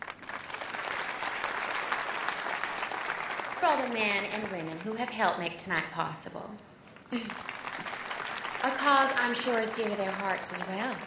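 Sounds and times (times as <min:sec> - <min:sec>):
audience applause at an evening event: 0:00.0 - 0:04.9, 0:07.1 - 0:11.0
speech: 0:03.6 - 0:07.5, 0:08.6 - 0:11.0.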